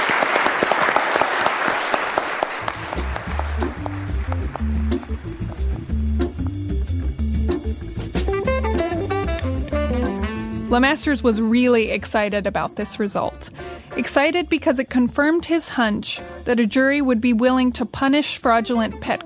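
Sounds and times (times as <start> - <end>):
audience applause: 0.0 - 5.9
steady rhythmic music track with a deep bass line: 2.7 - 13.9
speech: 10.7 - 19.2.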